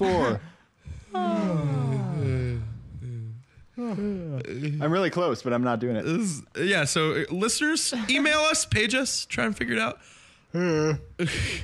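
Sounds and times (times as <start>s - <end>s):
speech: 0.0s - 0.5s, 4.0s - 11.6s
person yawning: 0.0s - 4.6s.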